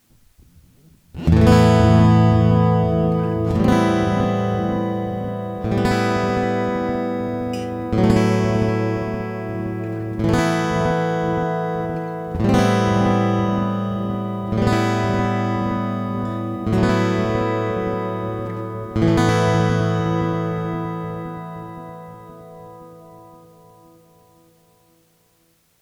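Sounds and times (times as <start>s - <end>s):
Harley Benton TravelMate electric guitar with delay: 1.2s - 21.7s.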